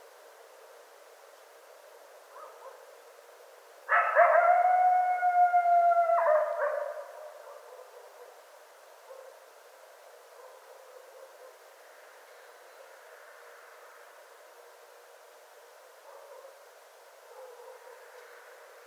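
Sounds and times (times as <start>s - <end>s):
coyote howling: 3.9s - 7.1s.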